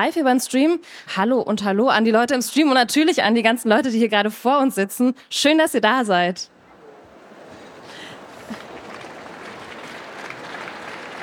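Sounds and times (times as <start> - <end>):
speech: 0.0 - 6.5
thunderous audience applause: 6.7 - 11.2.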